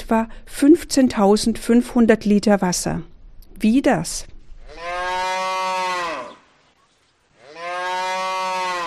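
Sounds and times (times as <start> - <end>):
speech: 0.1 - 4.9
cow mooing: 4.7 - 6.4, 7.4 - 8.8.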